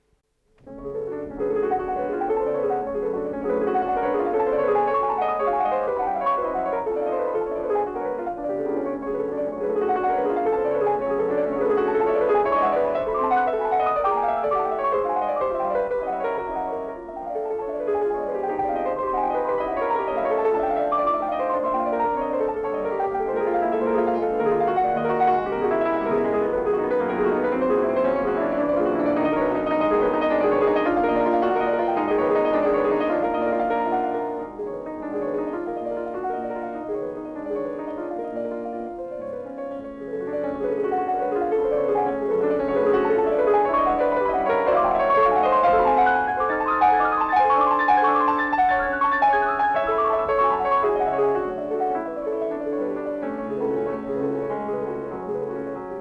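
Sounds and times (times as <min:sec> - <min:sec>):
prelude in F sharp minor: 0:00.0 - 0:55.9.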